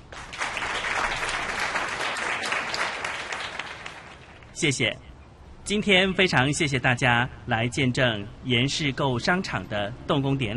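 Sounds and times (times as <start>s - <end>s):
audience applause: 0.0s - 4.4s
speech: 4.6s - 5.1s, 5.7s - 10.5s.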